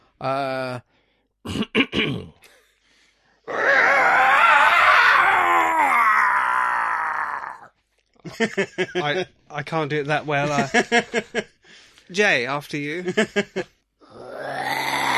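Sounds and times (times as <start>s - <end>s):
speech: 0.2s - 2.4s, 8.4s - 11.5s, 12.1s - 13.8s
person imitating a beast's roar: 3.5s - 7.7s, 14.0s - 15.1s
breathy grunts: 14.0s - 15.1s.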